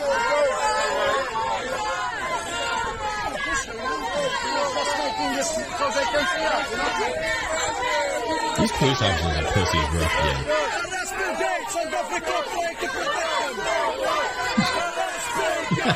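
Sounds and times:
protesters shouting and screaming: 0.0 - 15.9
speech: 6.1 - 7.4, 8.6 - 13.8
laughter: 8.6 - 10.5, 14.0 - 15.9.

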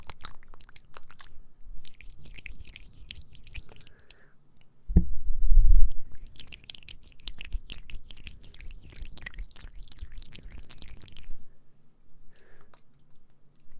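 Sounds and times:
wet ASMR mouth sounds: 0.0 - 4.7, 5.9 - 11.4, 12.4 - 13.7
faint low hum: 0.0 - 13.7.

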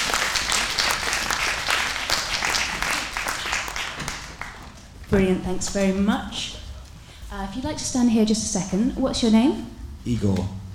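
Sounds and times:
audience applause: 0.0 - 5.0
speech: 5.1 - 6.6, 7.3 - 10.6.

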